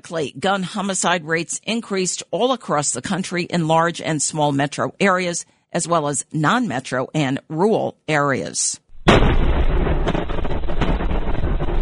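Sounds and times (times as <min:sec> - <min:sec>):
speech: 0:00.0 - 0:09.4
artillery shelling explosions: 0:08.9 - 0:11.8.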